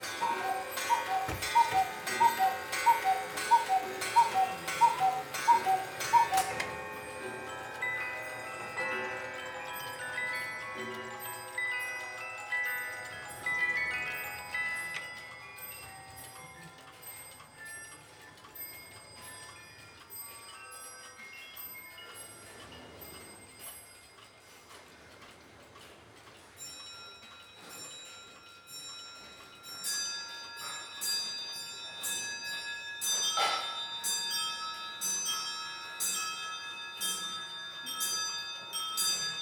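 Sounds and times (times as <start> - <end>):
pendulum clocks: 0.0 - 39.4.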